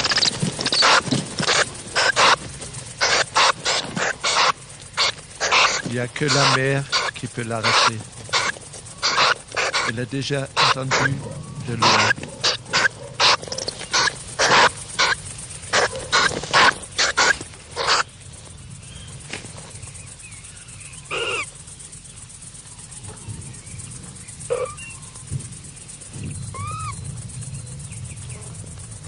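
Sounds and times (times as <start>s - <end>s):
chicks answering in nest: 0.0s - 18.1s, 20.9s - 21.5s, 24.4s - 25.2s, 26.2s - 27.1s
mother bird calling: 0.0s - 18.2s, 19.8s - 21.6s, 22.7s - 25.3s, 26.1s - 28.6s
speech: 6.0s - 8.2s, 9.9s - 12.2s.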